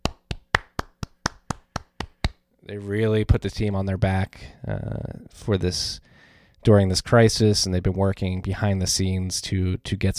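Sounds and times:
crisp hand claps: 0:00.0 - 0:02.4
speech: 0:02.7 - 0:10.1.

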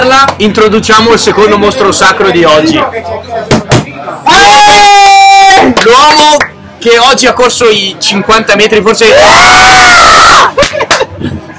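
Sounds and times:
speech: 0:00.4 - 0:04.9, 0:05.9 - 0:10.8
man's triumphant victory yell after a Peter Sagan cycling win: 0:04.3 - 0:05.7, 0:09.2 - 0:10.5.

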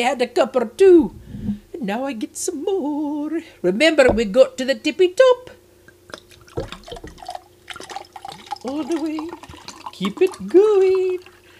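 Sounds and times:
speech: 0:00.0 - 0:05.6, 0:08.6 - 0:11.3
sherry pouring into a glass: 0:06.1 - 0:11.5.

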